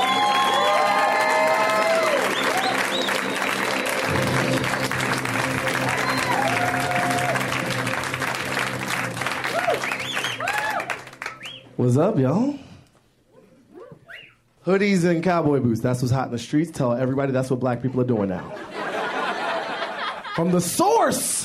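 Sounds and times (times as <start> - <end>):
audience applause welcoming an author and comedian at a live show: 0.0 - 11.6
speech: 11.8 - 12.6, 14.6 - 18.7, 20.4 - 21.4
laughter: 17.8 - 20.6.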